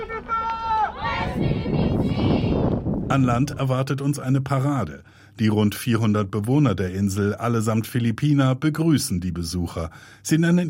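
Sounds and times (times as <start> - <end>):
activists cheering on arrival at the island: 0.0 - 2.8
speech: 3.1 - 10.6.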